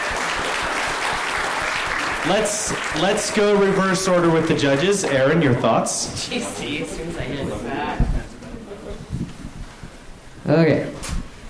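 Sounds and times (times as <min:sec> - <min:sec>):
round of applause: 0:00.0 - 0:05.9
speech: 0:02.2 - 0:08.2, 0:10.5 - 0:11.2.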